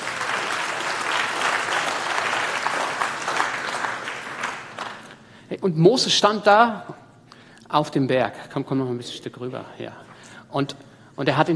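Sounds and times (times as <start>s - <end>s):
audience applause: 0.0s - 5.2s
speech: 5.5s - 7.0s, 7.7s - 11.5s.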